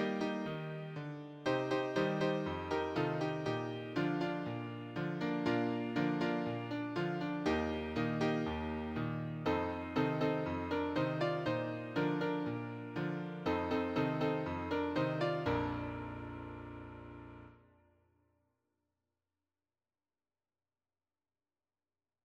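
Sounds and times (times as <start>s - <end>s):
piano accompaniment for church and Sunday school hymns: 0.0s - 17.6s.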